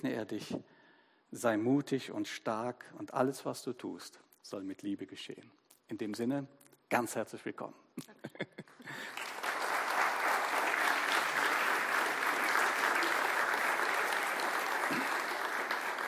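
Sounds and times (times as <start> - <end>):
speech: 0.0 - 9.3
audience applause: 8.9 - 16.0.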